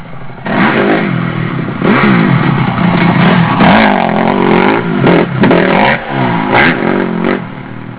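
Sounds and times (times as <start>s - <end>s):
CRF250 motorcycle engine: 0.0s - 7.9s.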